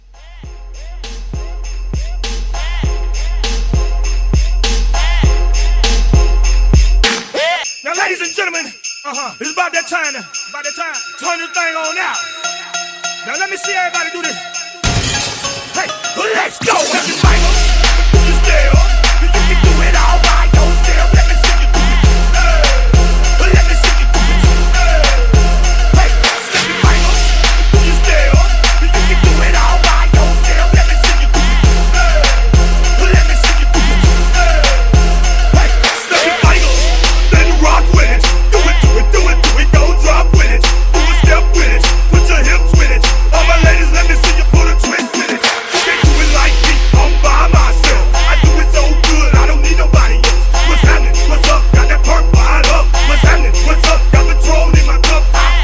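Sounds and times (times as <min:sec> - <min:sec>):
hip hop Christmas mashup: 0:00.0 - 0:55.6.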